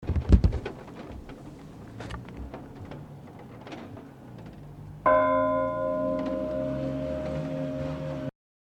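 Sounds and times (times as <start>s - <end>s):
bell ringing: 5.1s - 8.3s.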